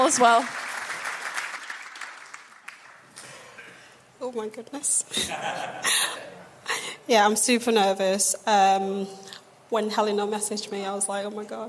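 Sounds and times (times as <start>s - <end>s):
speech: 0.0s - 0.6s, 4.2s - 11.6s
audience applause: 0.0s - 3.1s
laughter: 5.1s - 6.5s.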